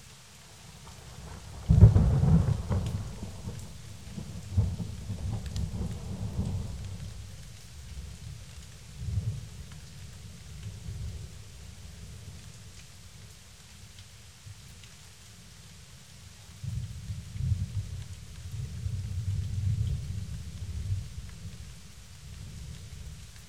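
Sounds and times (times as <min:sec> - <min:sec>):
light rain: 0:00.0 - 0:23.4
thunder: 0:01.5 - 0:07.2, 0:16.7 - 0:21.3.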